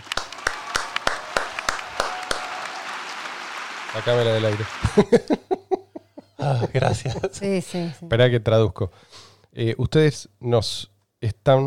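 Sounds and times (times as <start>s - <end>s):
audience ovation applause: 0.0s - 5.3s
speech: 3.9s - 5.8s, 6.4s - 11.6s
laughter: 4.1s - 7.6s.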